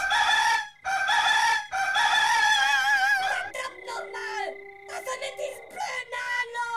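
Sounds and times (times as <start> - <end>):
rooster crowing: 0.0 - 6.6.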